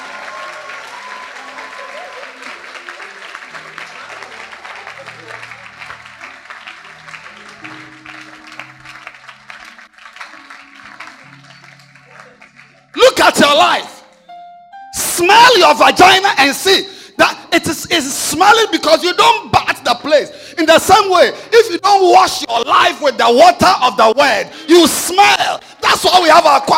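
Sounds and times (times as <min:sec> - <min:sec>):
audience clapping hands: 0:00.0 - 0:14.0
speech: 0:13.5 - 0:13.9, 0:15.2 - 0:26.7.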